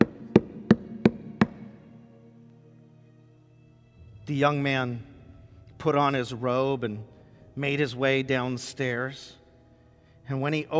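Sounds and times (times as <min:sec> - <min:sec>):
loud knocking at a front door: 0:00.0 - 0:01.6
speech: 0:04.3 - 0:05.1, 0:05.8 - 0:09.4, 0:10.3 - 0:10.7.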